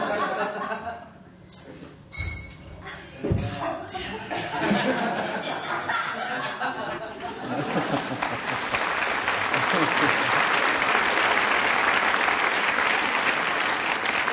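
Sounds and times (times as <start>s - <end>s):
laughter: 0.0s - 1.2s, 2.8s - 11.0s
crowd applause: 6.9s - 14.3s.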